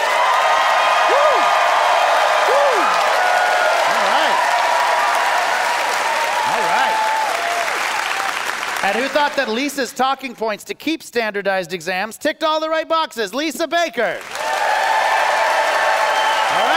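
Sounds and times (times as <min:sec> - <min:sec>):
scattered whoops and cheering voices: 0:00.0 - 0:08.3, 0:14.4 - 0:16.7
large audience applause: 0:00.0 - 0:09.9, 0:14.2 - 0:16.7
speech: 0:08.8 - 0:14.4.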